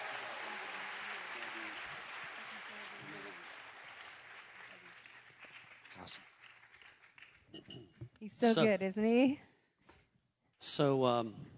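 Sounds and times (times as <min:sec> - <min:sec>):
audience applause: 0:00.0 - 0:07.5
speech: 0:06.0 - 0:06.3, 0:07.5 - 0:09.5, 0:10.8 - 0:11.5.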